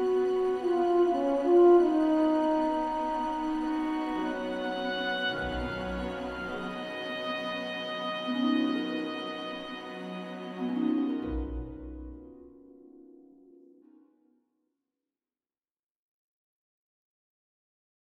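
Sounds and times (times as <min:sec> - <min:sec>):
cinematic radio intro music: 0:00.0 - 0:14.0.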